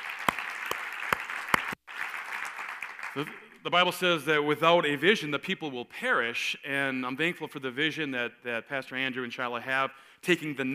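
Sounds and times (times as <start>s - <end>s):
audience applause: 0.0s - 3.5s
speech: 3.2s - 10.7s.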